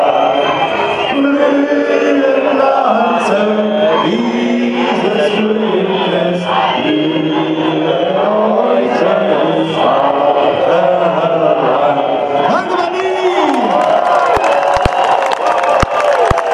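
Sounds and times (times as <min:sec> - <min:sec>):
whistles: 0:00.0 - 0:10.5, 0:14.2 - 0:16.5
large demonstration crowd cheering and shouting: 0:00.0 - 0:16.5
sharp claps: 0:13.5 - 0:16.5.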